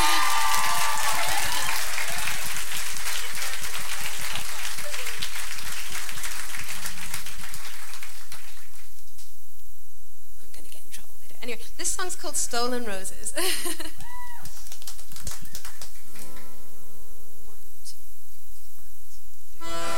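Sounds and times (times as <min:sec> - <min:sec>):
crowd applause after a solo: 0:00.0 - 0:09.2, 0:14.0 - 0:16.8
speech: 0:11.8 - 0:14.1.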